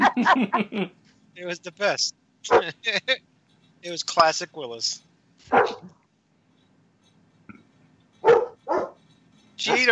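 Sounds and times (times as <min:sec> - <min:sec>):
laughter: 0:00.0 - 0:00.9
speech: 0:00.2 - 0:06.0, 0:09.6 - 0:09.9
dog barking: 0:02.5 - 0:02.7, 0:05.5 - 0:05.9, 0:08.2 - 0:09.0.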